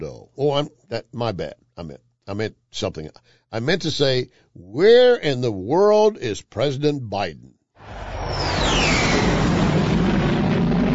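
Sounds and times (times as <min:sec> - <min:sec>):
speech: 0:00.0 - 0:09.3
jet aircraft roaring past: 0:07.8 - 0:10.9.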